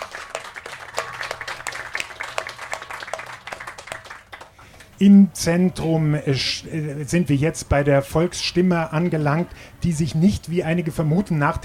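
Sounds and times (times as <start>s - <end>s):
audience applause: 0.0s - 4.8s
speech: 5.0s - 11.6s.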